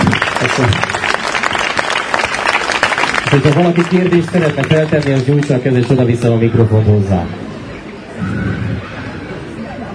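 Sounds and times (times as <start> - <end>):
room full of people applauding: 0.0 - 6.1
speech: 0.6 - 0.9, 3.3 - 7.4.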